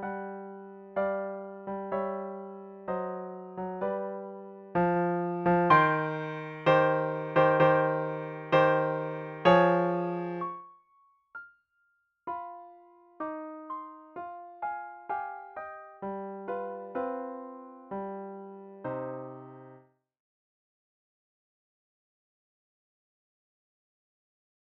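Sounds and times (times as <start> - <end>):
solo piano funeral march: 0.0 - 10.6, 12.3 - 19.8.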